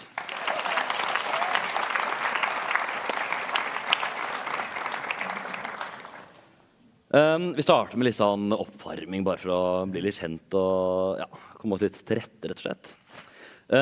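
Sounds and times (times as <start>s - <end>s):
audience applause: 0.0s - 6.5s
speech: 7.2s - 12.9s.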